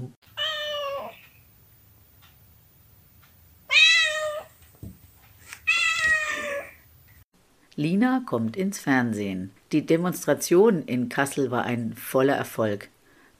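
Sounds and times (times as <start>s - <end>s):
cat meowing: 0.3s - 1.2s, 3.7s - 4.6s, 5.6s - 6.8s
speech: 7.8s - 13.0s.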